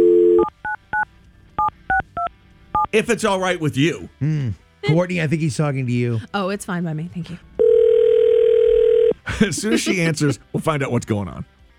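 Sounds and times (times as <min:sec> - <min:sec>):
touch-tone phone dial tone: 0:00.0 - 0:00.5, 0:07.6 - 0:09.2
touch-tone phone keypad beeps: 0:00.0 - 0:02.9
speech: 0:02.9 - 0:07.5, 0:09.3 - 0:11.6
laughter: 0:09.3 - 0:10.6.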